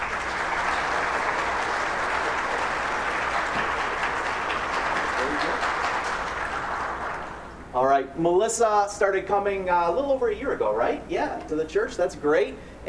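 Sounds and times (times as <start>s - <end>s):
church congregation applauding as a woman comes forward before her baptism: 0.0s - 7.6s
speech: 7.8s - 12.8s.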